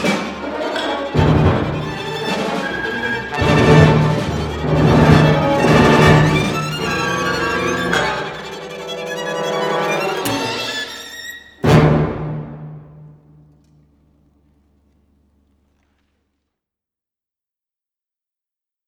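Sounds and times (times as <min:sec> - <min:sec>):
violin concerto: 0:00.0 - 0:13.1.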